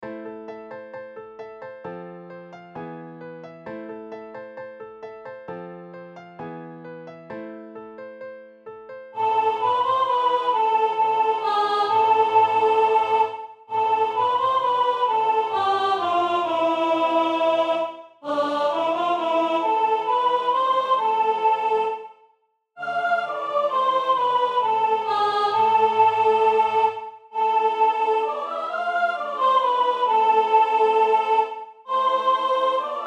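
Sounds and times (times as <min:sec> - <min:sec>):
soprano voice: 0:09.2 - 0:22.0, 0:22.8 - 0:33.0.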